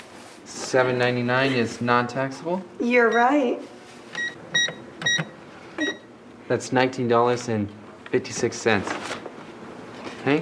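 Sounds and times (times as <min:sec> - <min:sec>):
speech: 0:00.7 - 0:03.7, 0:06.5 - 0:09.1
cash register ringing up items with short high electronic beeps: 0:04.2 - 0:06.1.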